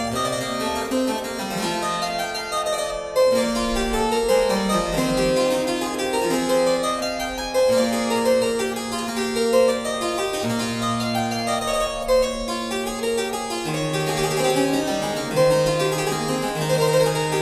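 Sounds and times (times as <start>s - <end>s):
Goermans Taskin harpsichord playing a prelude: 0.0s - 17.4s.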